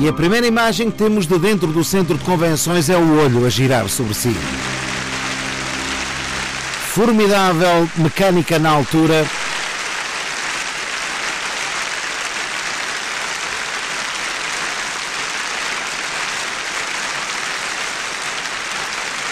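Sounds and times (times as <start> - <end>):
speech: 0.0 - 4.8, 7.0 - 9.4
audience applause for the orchestra: 2.1 - 19.3.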